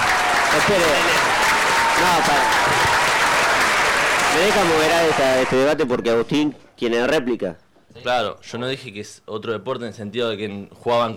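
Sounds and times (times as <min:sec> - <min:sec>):
applause: 0:00.0 - 0:05.6
speech: 0:00.6 - 0:01.2, 0:02.0 - 0:02.9, 0:04.4 - 0:11.1.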